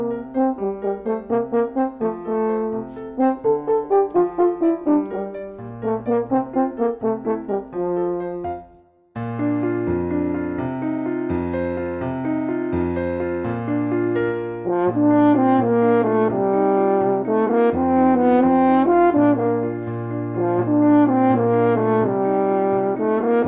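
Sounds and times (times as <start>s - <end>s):
French horn solo at performance tempo: 0.0s - 8.8s, 14.6s - 23.4s
piano accompaniment: 0.0s - 23.4s.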